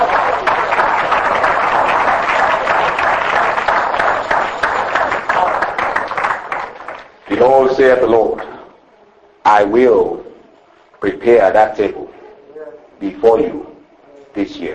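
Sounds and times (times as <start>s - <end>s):
audience clapping hands: 0.0s - 8.6s
speech: 7.4s - 8.5s, 9.5s - 10.2s, 11.0s - 12.0s, 13.0s - 13.7s, 14.4s - 14.7s.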